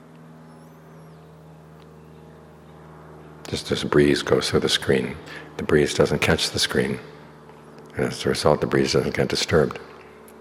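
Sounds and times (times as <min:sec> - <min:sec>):
airplane passing overhead: 0:00.4 - 0:10.2
speech: 0:03.5 - 0:07.2, 0:08.0 - 0:09.9.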